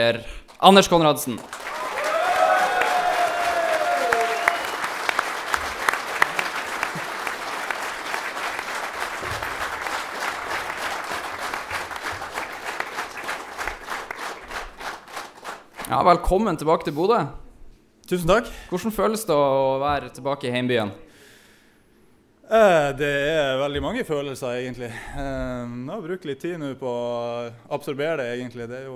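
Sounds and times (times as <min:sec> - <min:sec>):
speech: 0:00.0 - 0:01.6, 0:16.0 - 0:17.4, 0:18.1 - 0:21.1, 0:22.5 - 0:28.9
warm applause from live audience: 0:01.3 - 0:15.9.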